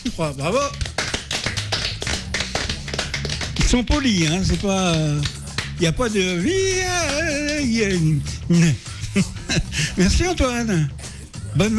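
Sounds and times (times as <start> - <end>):
speech: 0.2 - 0.9, 3.7 - 11.0, 11.6 - 11.7
audience applause: 0.9 - 4.6.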